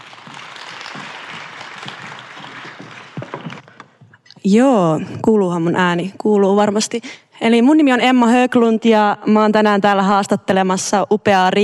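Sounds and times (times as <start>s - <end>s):
resounding applause from audience: 0.0s - 3.9s
speech: 4.4s - 11.6s.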